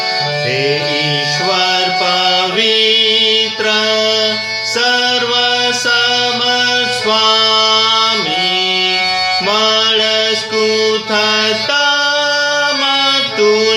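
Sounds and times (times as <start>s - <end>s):
hymn tune being sung: 0.2s - 13.7s.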